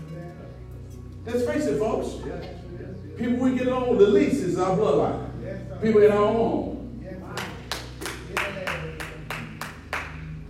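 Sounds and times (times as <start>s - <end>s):
speech: 1.2s - 6.7s
audience clapping: 7.3s - 10.4s.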